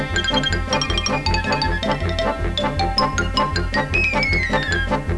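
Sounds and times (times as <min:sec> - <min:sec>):
xylophone: 0:00.2 - 0:05.1.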